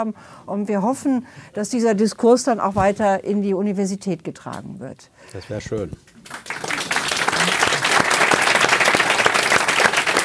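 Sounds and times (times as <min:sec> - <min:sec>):
speech: 0:00.0 - 0:06.5
audience applause: 0:06.2 - 0:10.2.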